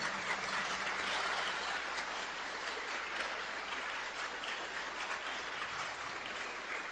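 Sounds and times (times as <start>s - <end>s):
audience applause: 0.0s - 6.9s.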